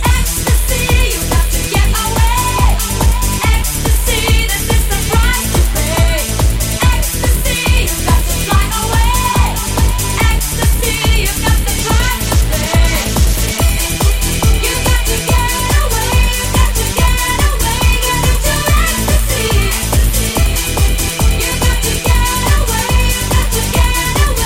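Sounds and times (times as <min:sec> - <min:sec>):
future beat music: 0:00.0 - 0:24.4.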